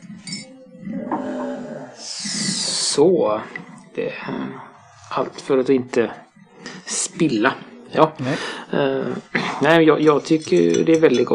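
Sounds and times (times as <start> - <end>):
stirring a drink: 0.0 - 8.3, 9.6 - 11.3
glass clinking: 0.2 - 1.5, 10.0 - 11.3
speech: 3.0 - 11.3.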